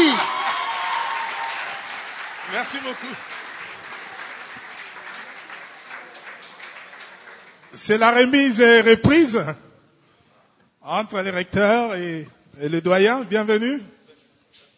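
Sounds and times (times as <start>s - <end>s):
audience applauding loudly: 0.0s - 8.2s
speech: 2.6s - 3.4s, 7.8s - 9.7s, 10.8s - 14.7s.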